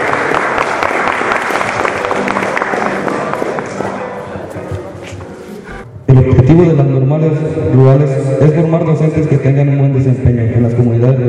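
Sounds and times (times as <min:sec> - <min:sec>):
applause for a student string ensemble: 0:00.0 - 0:04.2
speech: 0:06.5 - 0:11.2.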